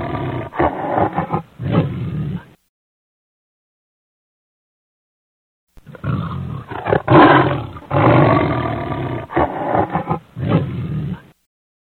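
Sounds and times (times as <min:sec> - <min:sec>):
lion roaring: 0:00.0 - 0:02.6, 0:05.8 - 0:11.4.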